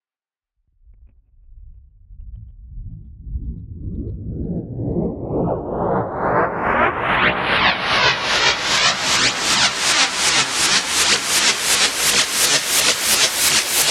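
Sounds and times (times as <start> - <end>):
rising sound: 2.8 - 13.8.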